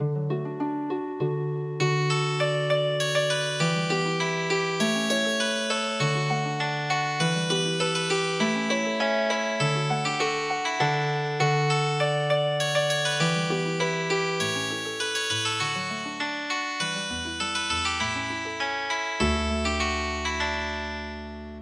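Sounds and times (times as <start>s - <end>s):
healing harp music: 0.0s - 21.5s.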